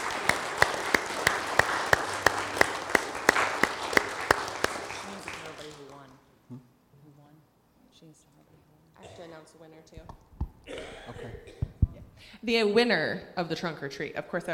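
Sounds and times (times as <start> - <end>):
audience applause: 0.0 - 6.0
speech: 12.4 - 14.5.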